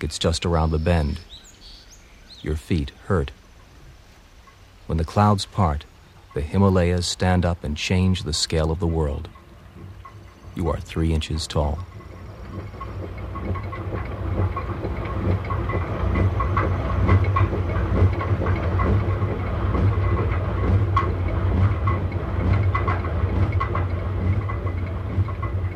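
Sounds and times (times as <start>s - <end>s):
speech: 0.0s - 1.4s, 2.4s - 3.4s, 4.9s - 9.4s, 10.6s - 11.9s
rushing stream water: 2.0s - 25.7s
knocks and clatters: 8.4s - 25.7s.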